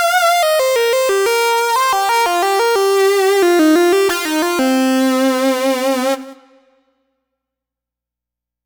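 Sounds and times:
lead synth lick: 0.2 - 6.6.

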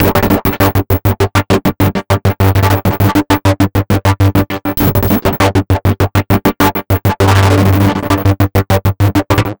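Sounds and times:
envelope beat: 0.0 - 9.5.

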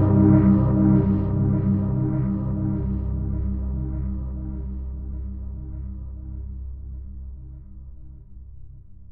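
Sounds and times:
warm PWM synth strings: 0.0 - 6.9.

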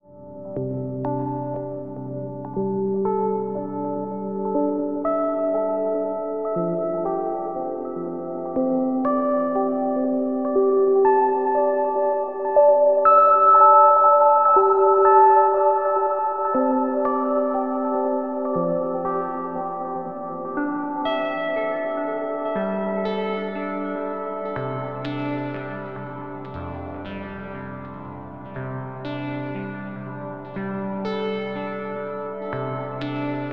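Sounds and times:
ambient arpeggios: 0.0 - 33.5.

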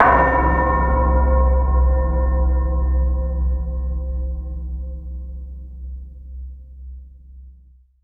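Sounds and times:
bell: 0.0 - 3.7.

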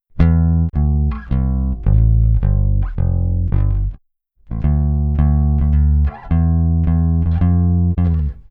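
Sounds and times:
African jazz bass: 0.2 - 8.4.

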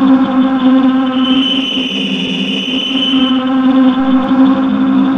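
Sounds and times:
ambient feedback: 0.1 - 5.0
bright buzz: 1.1 - 4.6.

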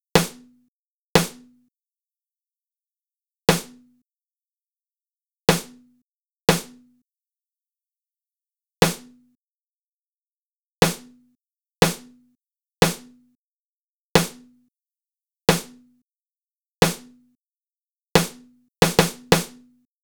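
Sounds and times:
snare drum patterns: 0.2 - 0.5, 1.2 - 1.5, 3.5 - 3.8, 5.5 - 5.8, 6.5 - 6.8, 8.8 - 9.1, 10.8 - 11.1, 11.8 - 12.1, 12.8 - 13.1, 14.2 - 14.5, 15.5 - 15.8, 16.8 - 17.1, 18.2 - 19.7.

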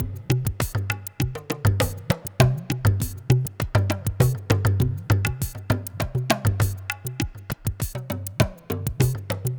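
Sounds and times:
ethnotronic processed percussion: 0.0 - 9.5.

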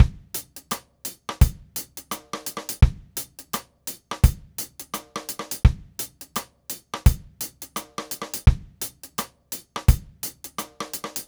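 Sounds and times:
reggae drum kit: 0.0 - 11.2.

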